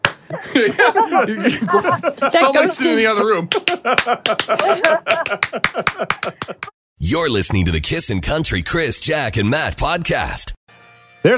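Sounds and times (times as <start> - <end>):
hand clap: 0.0 - 0.4, 3.5 - 6.8
laughter: 0.2 - 6.7
speech: 0.4 - 10.6.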